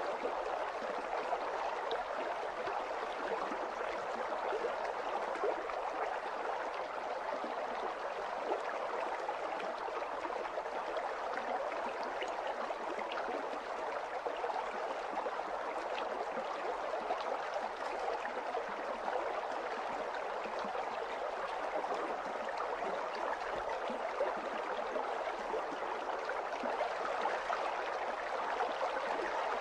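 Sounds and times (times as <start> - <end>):
gentle water stream: 0.0 - 29.5.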